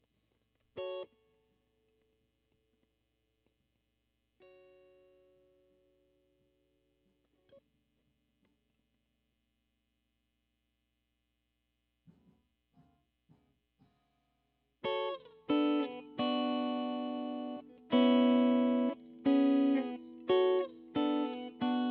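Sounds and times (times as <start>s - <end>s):
guitar: 0.0s - 9.0s, 14.8s - 21.8s.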